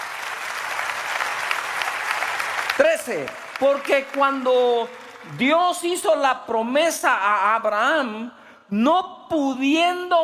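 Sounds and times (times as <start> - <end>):
audience applause: 0.0 - 5.8
speech: 2.8 - 10.2.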